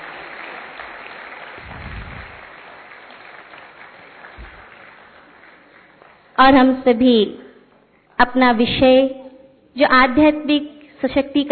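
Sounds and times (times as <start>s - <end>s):
loud applause: 0.0s - 6.4s
speech: 6.4s - 7.4s, 8.2s - 9.2s, 9.8s - 11.5s.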